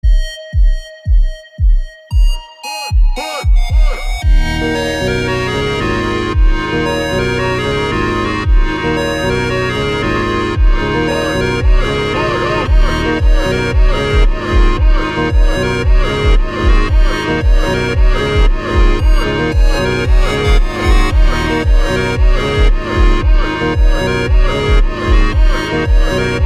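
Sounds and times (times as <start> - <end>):
slowed montagem music: 0.0 - 26.4.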